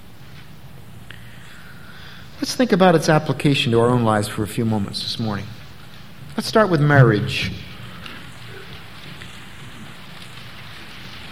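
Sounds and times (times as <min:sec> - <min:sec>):
speech: 0:02.4 - 0:05.6, 0:06.4 - 0:07.7
audience turning paper pages: 0:07.8 - 0:11.3.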